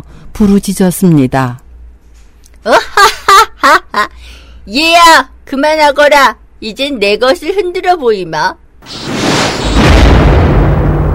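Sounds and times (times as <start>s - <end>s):
speech: 0.4s - 1.6s, 2.6s - 3.0s, 4.7s - 9.0s
fire bursting out with fiery whoosh and roar: 8.8s - 11.1s.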